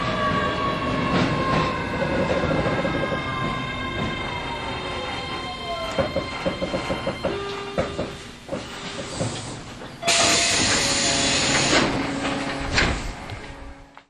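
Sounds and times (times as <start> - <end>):
VVVF electric train running: 0.0 - 14.0.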